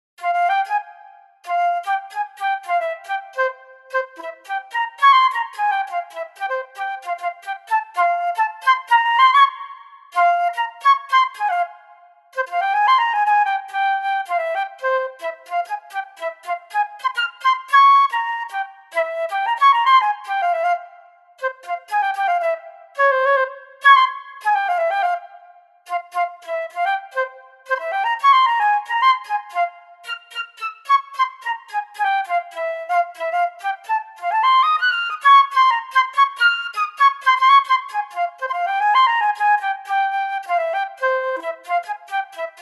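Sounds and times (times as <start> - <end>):
flute: 0.2 - 42.6.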